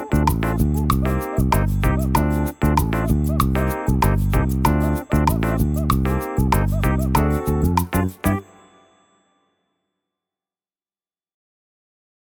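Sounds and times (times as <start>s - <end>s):
latin partido music: 0.0s - 8.8s.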